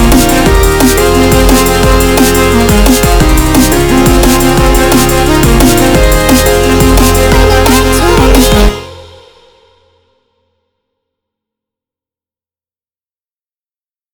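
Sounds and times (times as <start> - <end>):
drum and bass beat: 0.0 - 8.9.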